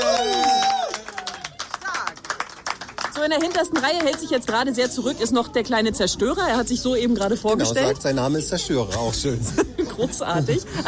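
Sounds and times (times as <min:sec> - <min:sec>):
audience applause: 0:00.0 - 0:04.6
speech: 0:03.2 - 0:10.8
laughter: 0:09.2 - 0:10.8.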